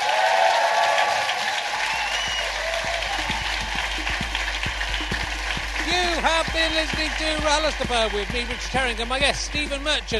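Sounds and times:
crowd applause: 0.0 - 10.1
speech: 6.2 - 10.1.

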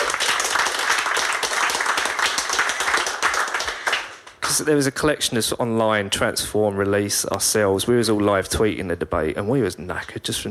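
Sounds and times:
audience round of applause: 0.0 - 4.5
speech: 4.6 - 10.4.

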